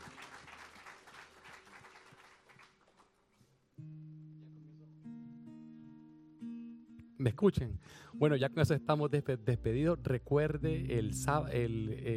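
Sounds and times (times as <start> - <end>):
audience applauding: 0.0 - 3.4
speech: 7.2 - 12.1
loud sustained keyboard chords: 8.2 - 12.1.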